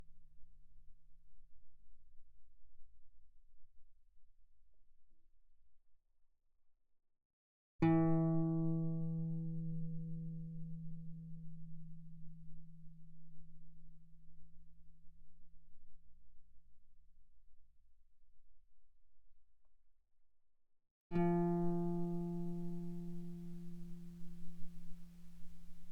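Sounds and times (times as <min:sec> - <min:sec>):
guitar played fortissimo on the D string: 0:07.8 - 0:11.2, 0:21.1 - 0:25.9.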